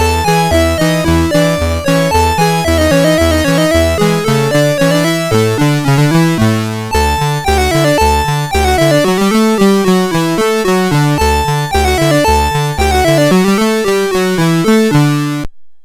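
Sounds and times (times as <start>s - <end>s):
musette in D on sound chip: 0.0s - 15.5s.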